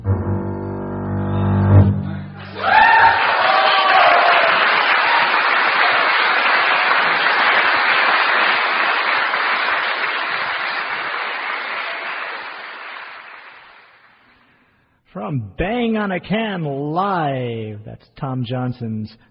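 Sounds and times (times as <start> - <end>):
low sustained string bass notes: 0.0 - 2.5
audience applause after a performance: 2.4 - 14.2
speech: 15.6 - 19.2.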